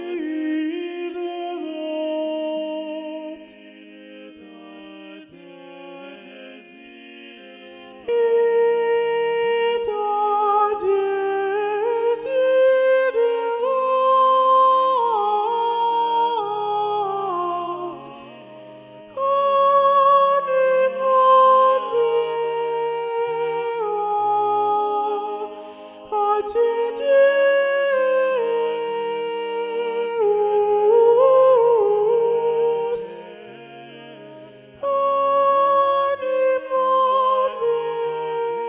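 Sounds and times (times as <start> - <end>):
predominant soprano singing: 0.0 - 38.6.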